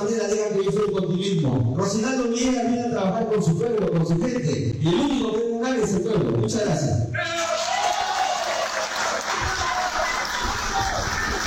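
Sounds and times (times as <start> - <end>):
speech: 0.3 - 7.4
audience applause: 7.3 - 11.4.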